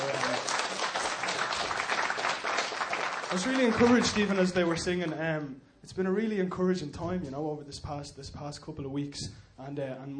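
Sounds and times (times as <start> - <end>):
round of applause: 0.0 - 5.2
speech: 3.3 - 10.1.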